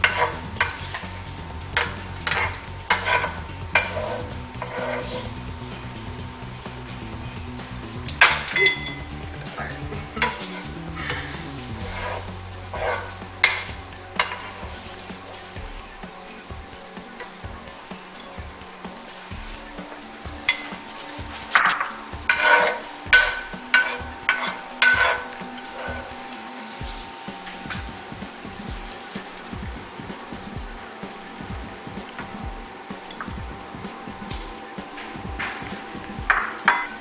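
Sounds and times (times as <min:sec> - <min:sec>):
sage, herbs and garlic sizzling in a pot of hot oil: 0:00.0 - 0:36.9
scraping stirs in a pot: 0:00.0 - 0:36.9.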